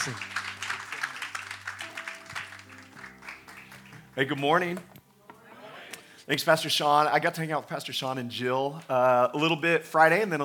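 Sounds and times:
speech: 0.0s - 0.3s, 4.2s - 4.9s, 6.3s - 10.4s
audience applause: 0.0s - 4.6s.

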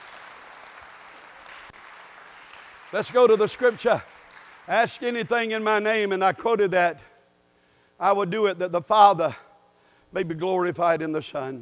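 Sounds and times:
church congregation clapping: 0.0s - 5.8s
speech: 2.9s - 4.1s, 4.7s - 7.1s, 8.0s - 9.4s, 10.1s - 11.5s.

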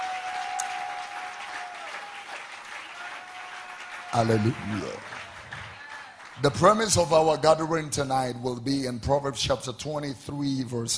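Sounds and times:
audience clapping hands: 0.0s - 7.8s
speech: 4.1s - 5.2s, 6.4s - 10.9s.

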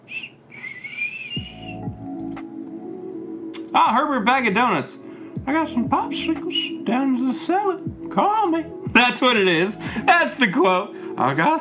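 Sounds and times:
wavering high-pitched whistle: 0.0s - 2.1s
speech: 3.8s - 11.5s.

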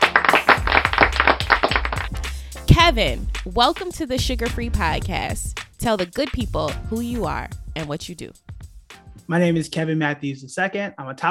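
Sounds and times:
audience rhythmic clapping: 0.0s - 8.3s
dull low thumps: 0.6s - 7.8s
speech: 2.9s - 8.4s, 9.3s - 11.3s.

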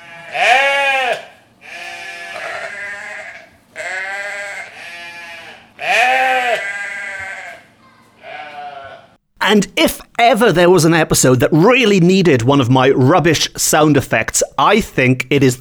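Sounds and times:
goats bleating sound effect: 0.0s - 10.2s
speech: 9.5s - 15.5s.

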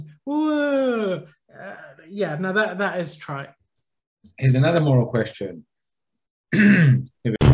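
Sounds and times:
speech: 0.3s - 1.4s, 2.1s - 3.6s, 4.3s - 5.7s, 6.5s - 7.4s
rough gravelly throat clearing: 6.5s - 7.1s.

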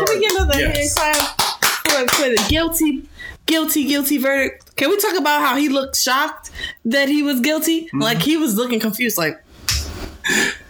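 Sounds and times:
hand clapping: 0.0s - 2.6s, 9.7s - 10.0s
speech: 0.6s - 1.3s, 2.0s - 9.4s, 10.3s - 10.6s.

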